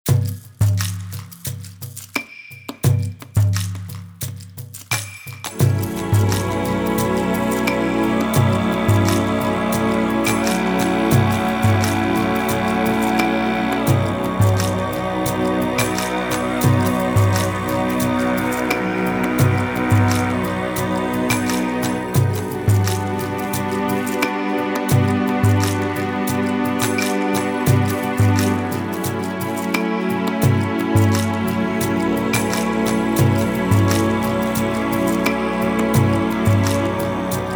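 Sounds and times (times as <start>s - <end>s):
exotic dramatic music: 2.8s - 37.5s.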